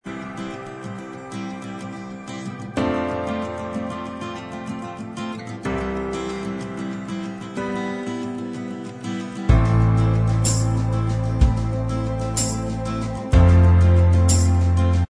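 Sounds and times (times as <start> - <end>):
instrumental music: 0.0 - 15.0.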